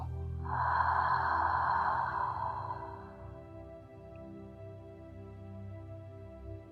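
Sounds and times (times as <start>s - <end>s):
deep breath in and out during a guided breathing exercise: 0.0s - 3.9s.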